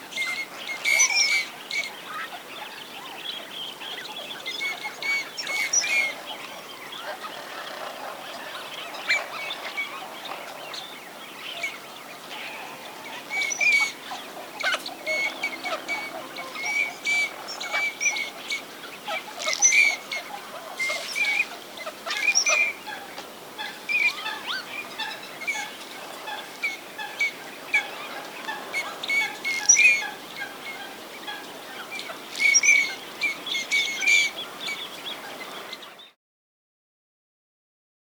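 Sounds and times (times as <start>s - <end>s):
teal birdsong: 0.0s - 36.2s.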